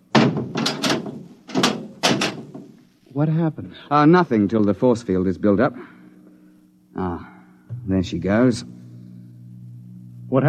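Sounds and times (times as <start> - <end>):
hatch slammed shut before departure: 0.0 - 2.7
speech: 3.2 - 6.0, 7.0 - 8.8.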